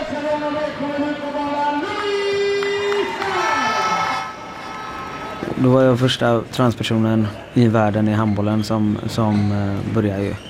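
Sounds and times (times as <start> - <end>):
large handball crowd cheering and chanting in an arena: 0.0 - 5.8
speech: 5.6 - 10.4.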